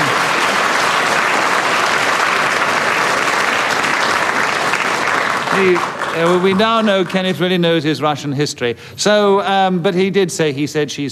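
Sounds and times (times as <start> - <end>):
audience applause: 0.0 - 7.8
speech: 5.6 - 11.0.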